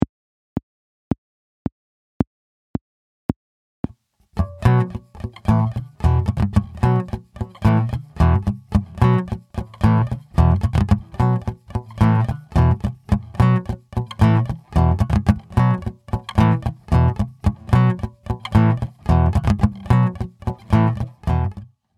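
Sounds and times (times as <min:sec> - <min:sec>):
guitar power chords: 0:04.4 - 0:21.6.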